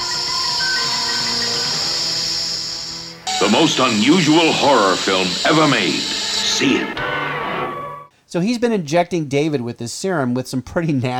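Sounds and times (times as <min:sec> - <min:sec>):
faint sustained tones: 0:00.0 - 0:07.2
snake hissing: 0:00.2 - 0:06.9
speech: 0:03.4 - 0:07.1, 0:08.3 - 0:11.1.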